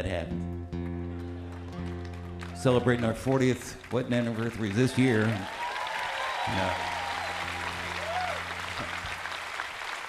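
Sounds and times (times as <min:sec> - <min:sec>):
speech: 0:00.0 - 0:00.8, 0:02.6 - 0:05.6, 0:06.4 - 0:07.0
audience clapping: 0:00.8 - 0:10.0.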